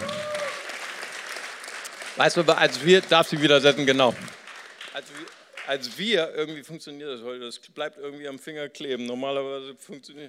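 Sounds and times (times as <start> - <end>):
applause: 0.0 - 6.3
speech: 2.2 - 4.4, 5.0 - 10.2.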